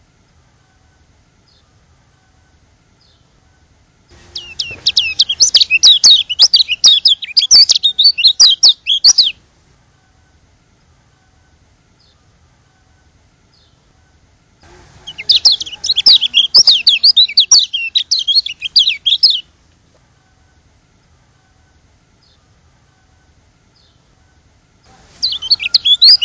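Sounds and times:
white-eye twittering song: 4.2s - 9.4s, 13.5s - 13.9s, 15.0s - 19.5s, 23.8s - 24.1s, 25.2s - 26.2s.

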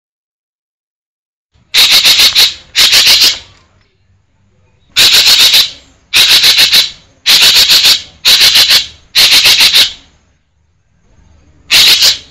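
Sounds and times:
green magpie harsh chattering: 1.7s - 3.5s, 5.0s - 10.1s, 11.7s - 12.2s.

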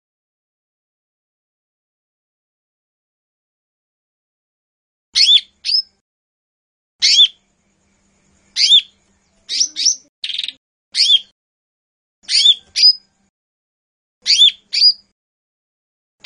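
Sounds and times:
Lesser green leafbird song with chirps and buzzy trills: 5.2s - 6.0s, 7.0s - 11.3s, 12.2s - 13.3s, 14.2s - 15.1s.

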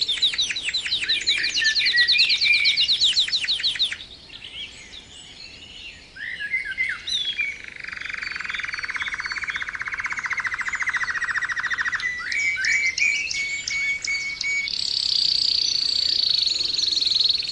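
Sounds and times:
canary song: 0.0s - 17.4s.

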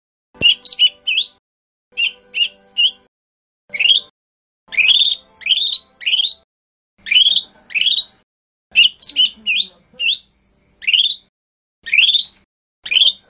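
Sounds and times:
Lesser green leafbird singing whistles, chirps and buzzy chatter: 0.4s - 1.4s, 2.0s - 3.1s, 3.7s - 4.1s, 4.7s - 6.4s, 7.0s - 13.2s.

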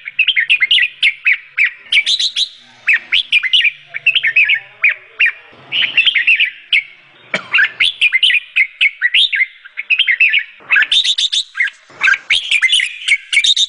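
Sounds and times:
sooty-headed bulbul singing chirpy twittering phrases: 0.0s - 13.6s.

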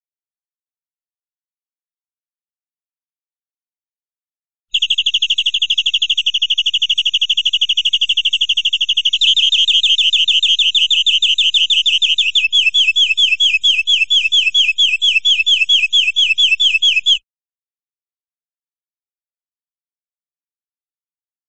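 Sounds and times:
European greenfinch buzzy trill: 4.7s - 17.2s.

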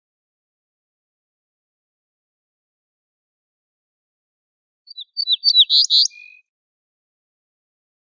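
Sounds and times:
ortolan bunting singing: 4.9s - 6.5s.

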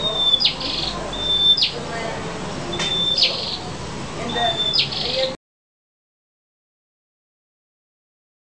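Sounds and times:
two red-headed prenjak birds chirping: 0.0s - 2.0s, 2.6s - 5.4s.

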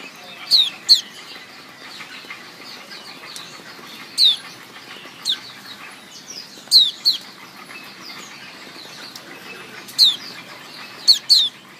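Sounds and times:
white-eye calls: 0.0s - 11.7s.

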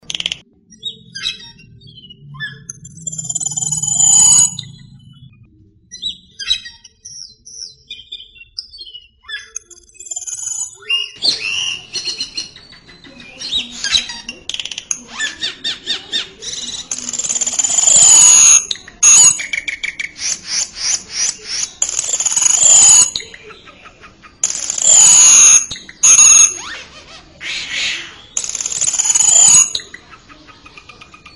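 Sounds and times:
songbird song of chirps and whistles: 0.0s - 31.3s.

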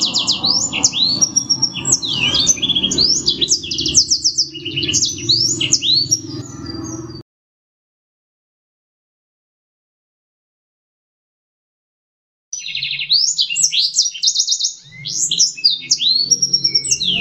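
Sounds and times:
black-throated canary singing: 0.0s - 7.2s, 12.6s - 17.1s.

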